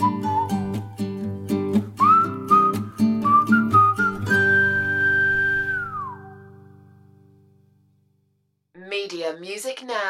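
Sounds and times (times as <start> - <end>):
whistling: 0.0 - 0.9, 2.0 - 6.6.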